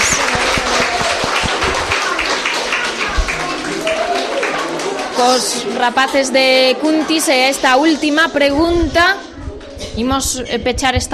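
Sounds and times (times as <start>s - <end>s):
audience applause: 0.0s - 5.6s
speech: 5.2s - 9.3s, 10.0s - 11.1s.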